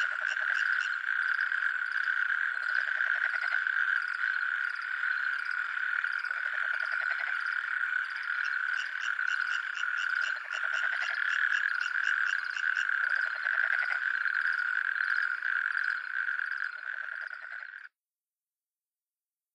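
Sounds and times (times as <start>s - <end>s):
natterjack toad calling in France: 0.0s - 17.9s.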